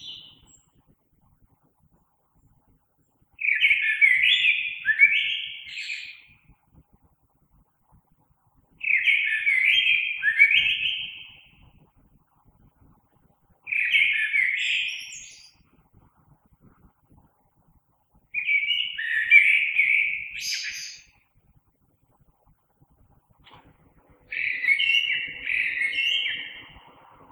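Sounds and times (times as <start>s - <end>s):
common blackbird singing: 0.0s - 0.8s, 3.4s - 6.3s, 8.8s - 11.5s, 13.7s - 15.6s, 18.4s - 21.2s, 24.0s - 27.3s.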